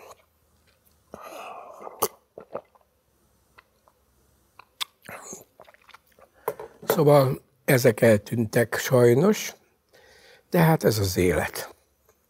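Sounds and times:
person sipping and swallowing a favorite beverage: 0:00.0 - 0:04.0, 0:04.6 - 0:06.4
speech: 0:07.0 - 0:09.6, 0:10.5 - 0:11.7.

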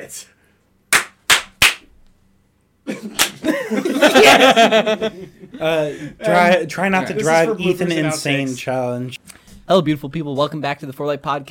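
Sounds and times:
speech: 0:00.0 - 0:00.4, 0:03.0 - 0:11.4
hand clap: 0:00.9 - 0:01.9, 0:03.1 - 0:03.5
laughter: 0:02.9 - 0:06.2.

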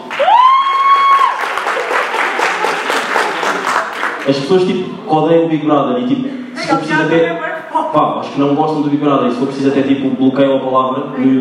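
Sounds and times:
audience clapping: 0:00.0 - 0:04.5
speech: 0:04.3 - 0:11.3.

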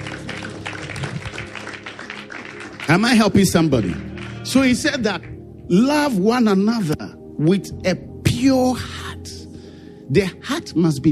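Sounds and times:
audience clapping: 0:00.0 - 0:05.3
speech: 0:02.9 - 0:09.0, 0:10.1 - 0:11.1.

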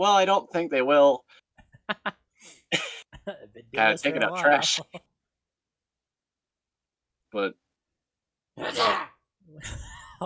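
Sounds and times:
speech: 0:00.0 - 0:05.1, 0:07.3 - 0:07.6, 0:08.6 - 0:10.2
sneeze: 0:08.6 - 0:09.2.

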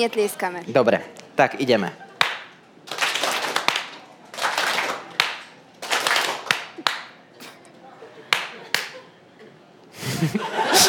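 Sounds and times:
speech: 0:00.0 - 0:02.0
audience clapping in response to cues: 0:02.2 - 0:07.2, 0:08.3 - 0:09.0
people chuckling: 0:06.7 - 0:10.8.

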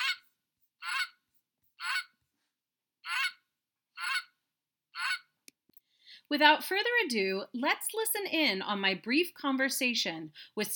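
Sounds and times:
goose honking: 0:00.0 - 0:00.2, 0:00.8 - 0:01.2, 0:01.8 - 0:02.1, 0:03.0 - 0:03.4, 0:04.0 - 0:04.3
speech: 0:06.3 - 0:10.7.

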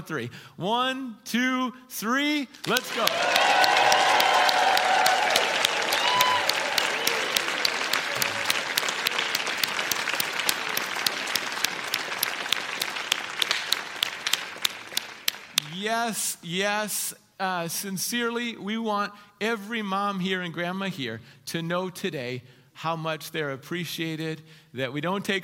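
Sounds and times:
speech: 0:00.0 - 0:04.4, 0:15.9 - 0:25.4
large audience applause: 0:02.6 - 0:15.8.

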